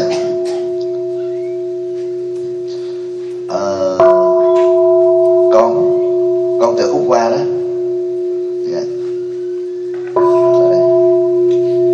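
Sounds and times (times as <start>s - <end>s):
bell strikes: 0.0s - 11.9s
sustained ringing tone: 0.0s - 11.9s.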